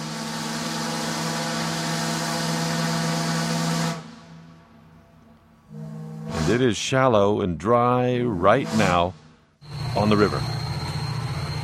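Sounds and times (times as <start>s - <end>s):
tugboat horn on the Mississippi River: 0.0s - 4.8s, 5.7s - 7.0s, 8.3s - 10.4s
speech: 6.5s - 9.2s, 10.0s - 10.6s.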